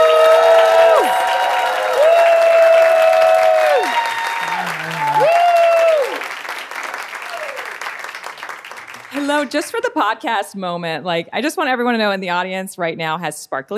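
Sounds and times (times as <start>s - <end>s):
live show audience cheering with high whoops: 0.0s - 6.3s, 7.2s - 7.8s
live show audience applauding a guest being introduced: 0.0s - 9.8s
speech: 9.5s - 13.7s.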